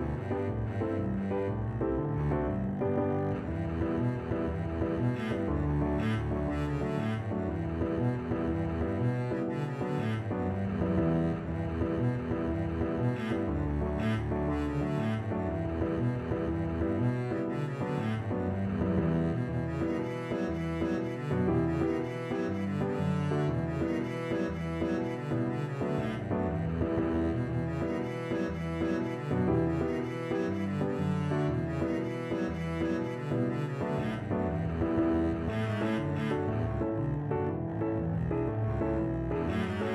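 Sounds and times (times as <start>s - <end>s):
double bass playing an Irish jig medley: 0.0s - 39.9s.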